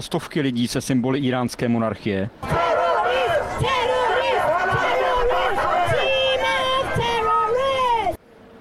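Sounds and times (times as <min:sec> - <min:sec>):
speech: 0:00.0 - 0:03.7
protest crowd chanting at regime: 0:02.4 - 0:08.2.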